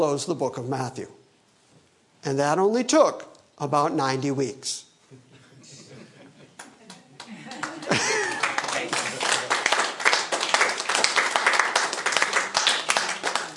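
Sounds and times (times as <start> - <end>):
speech: 0.0 - 1.2, 2.2 - 5.3
laughter: 5.1 - 9.7
smattering of applause: 6.6 - 13.5.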